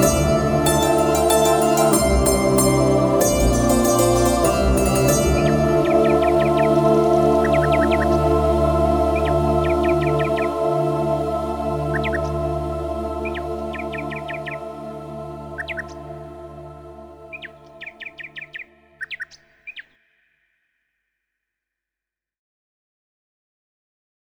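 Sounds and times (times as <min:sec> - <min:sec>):
vocal version of a song: 0:00.0 - 0:18.4.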